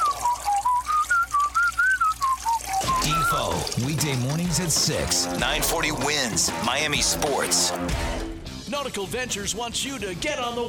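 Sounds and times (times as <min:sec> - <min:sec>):
man whistling at a urinal: 0:00.0 - 0:03.6
speech: 0:03.1 - 0:10.6.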